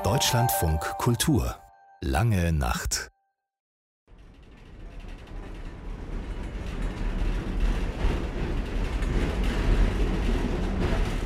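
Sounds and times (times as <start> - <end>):
speech: 0.1 - 3.1
rattling Soviet-made tram riding in Lviv: 4.1 - 11.2.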